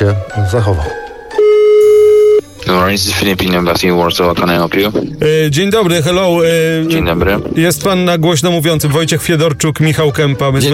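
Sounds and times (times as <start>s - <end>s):
speech: 0.0s - 1.0s, 2.7s - 10.7s
electronic ringback tone on an outgoing phone call: 1.3s - 2.5s.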